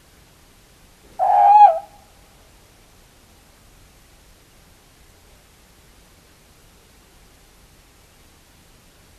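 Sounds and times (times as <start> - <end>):
tawny owl calling: 1.1 - 2.1.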